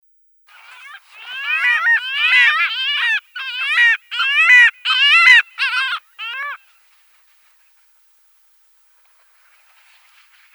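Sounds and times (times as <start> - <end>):
Arctic skua wailing mewing calls: 0.5 - 6.6.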